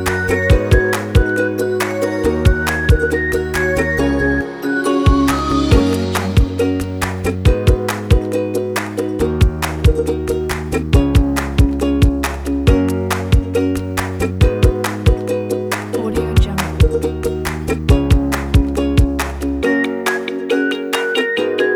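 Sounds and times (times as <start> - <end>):
corporate ukulele music: 0.0 - 21.7.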